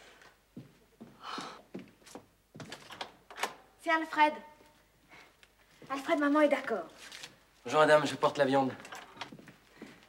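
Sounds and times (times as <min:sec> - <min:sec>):
door opened for the butcher delivering meat: 0:02.6 - 0:03.7
speech: 0:03.9 - 0:04.5, 0:05.9 - 0:08.9.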